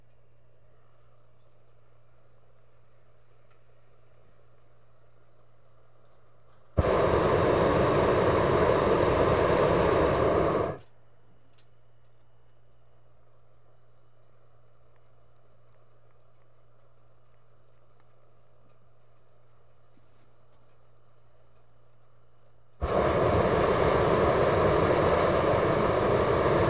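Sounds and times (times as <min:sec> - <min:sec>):
gas burners and pilot light: 0:06.8 - 0:10.8, 0:22.8 - 0:26.6.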